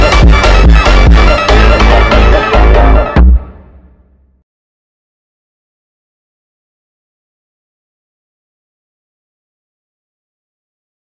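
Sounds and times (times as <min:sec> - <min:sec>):
sped up funk music: 0:00.0 - 0:03.7.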